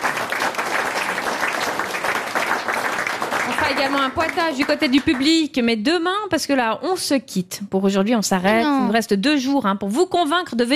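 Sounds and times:
audience applause: 0.0 - 5.4
speech: 3.7 - 10.7.

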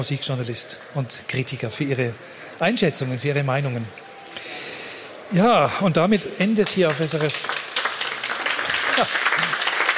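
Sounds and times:
speech: 0.0 - 4.1, 5.3 - 7.6, 9.0 - 9.5
concert audience applause after an orchestral summer concert: 6.4 - 9.9.

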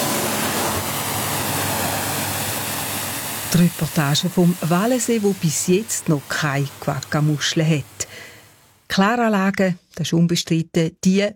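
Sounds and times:
hosing down a motorboat: 0.0 - 8.0
speech: 3.5 - 8.0, 8.9 - 11.3.

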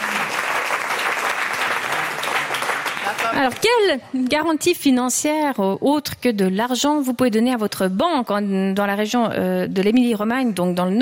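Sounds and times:
audience applause: 0.0 - 3.6
speech: 3.4 - 11.0.

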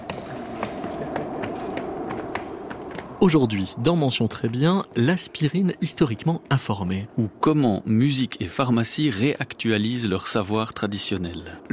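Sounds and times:
footsteps climbing a red staircase to a studio: 0.0 - 3.1
low hum: 0.0 - 11.7
speech: 3.2 - 11.7.

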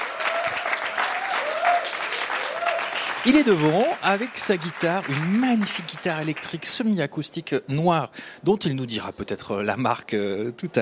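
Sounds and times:
audience applause: 0.0 - 6.8
speech: 3.2 - 10.7.

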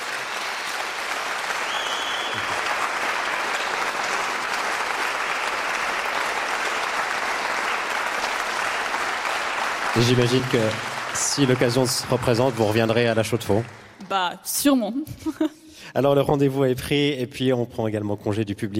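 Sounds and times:
audience applause after a recital: 0.0 - 14.0
speech: 10.0 - 18.7.

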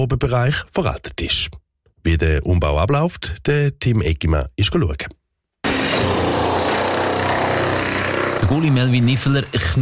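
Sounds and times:
speech: 0.0 - 5.2, 8.5 - 9.8
jackhammer chiselling out an old wall on a building site: 5.6 - 9.8.

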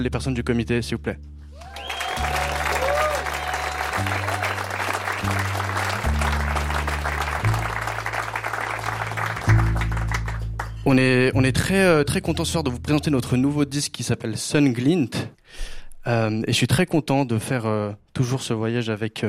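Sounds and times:
speech: 0.0 - 1.8, 10.9 - 19.2
audience applause: 1.6 - 10.8
deep sustained bass notes: 4.0 - 13.9.

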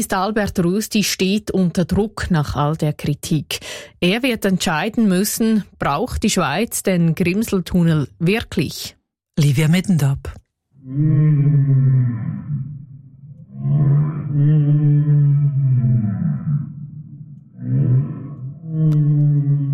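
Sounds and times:
speech: 0.0 - 12.7, 13.6 - 16.3, 18.8 - 19.7
whale calls: 10.8 - 19.7.

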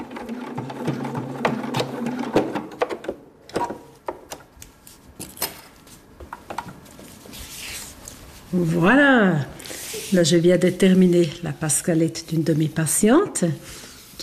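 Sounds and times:
sewing machine stitching in a hair salon in Peuzeux, canton of Neuchâtel: 0.0 - 3.1
speech: 8.5 - 9.5, 10.1 - 13.8.

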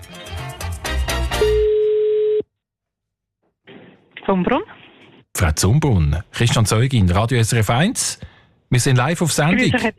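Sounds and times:
phone ringback tone on an outgoing call: 1.4 - 2.4
speech: 4.3 - 4.7, 5.4 - 9.9.

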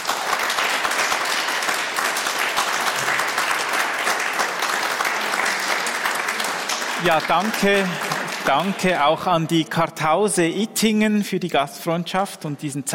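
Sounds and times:
audience applause: 0.0 - 9.4
speech: 7.0 - 12.9.

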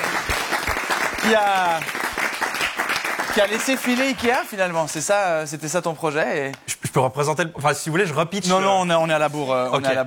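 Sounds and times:
audience clapping for a presenter: 0.0 - 5.0
speech: 1.2 - 2.0, 3.4 - 10.0.

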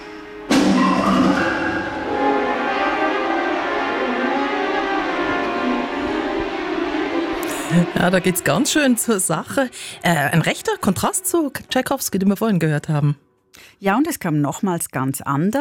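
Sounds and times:
orchestral music with percussion and bells: 0.0 - 12.4
speech: 7.8 - 15.5.

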